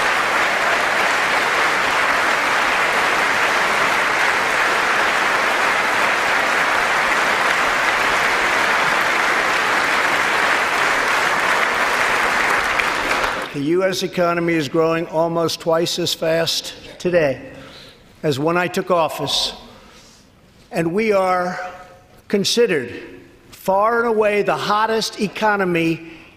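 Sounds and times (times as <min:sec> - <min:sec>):
sustained applause from a large crowd in the chamber: 0:00.0 - 0:13.6
speech: 0:13.8 - 0:17.6, 0:18.2 - 0:19.6, 0:20.7 - 0:21.7, 0:22.3 - 0:26.2.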